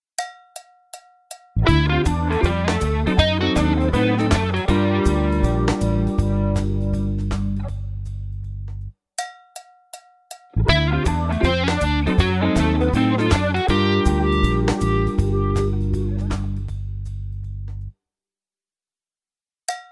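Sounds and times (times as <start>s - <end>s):
jazz rock music: 1.6s - 8.8s, 10.6s - 17.7s.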